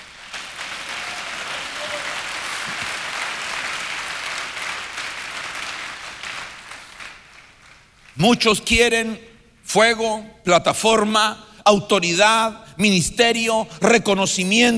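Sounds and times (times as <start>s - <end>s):
audience applauding: 0.0s - 8.1s
speech: 8.2s - 14.7s.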